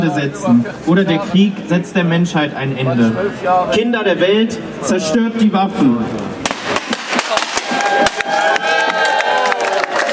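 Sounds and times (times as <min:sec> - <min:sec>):
speech: 0:00.0 - 0:06.3
audience applause: 0:07.6 - 0:10.1.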